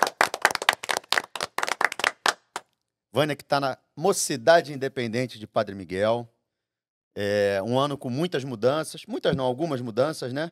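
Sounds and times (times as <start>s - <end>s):
studio audience applause: 0.0s - 2.6s
speech: 3.1s - 6.3s, 7.2s - 10.5s.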